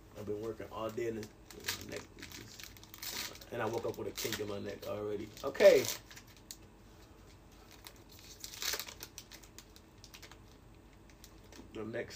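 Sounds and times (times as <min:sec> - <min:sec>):
speech: 0:00.2 - 0:02.6, 0:03.5 - 0:06.1, 0:11.8 - 0:12.1
trading card pack being torn open: 0:01.2 - 0:06.6, 0:07.7 - 0:10.5.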